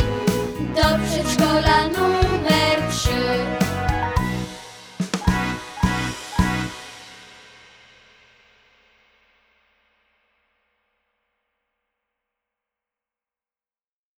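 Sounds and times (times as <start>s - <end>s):
kindergarten anthem vocal version: 0.0s - 6.6s.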